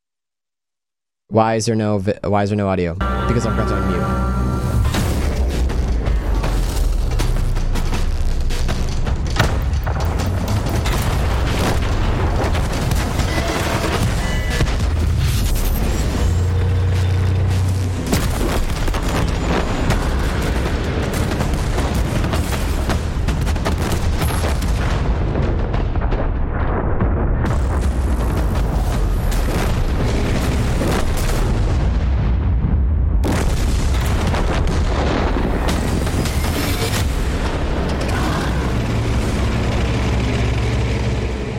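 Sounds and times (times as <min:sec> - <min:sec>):
speech: 0:01.3 - 0:04.5
explosions and artillery fire from a World of Tanks video game trailer: 0:04.8 - 0:41.5
heavy low roar: 0:37.6 - 0:41.5.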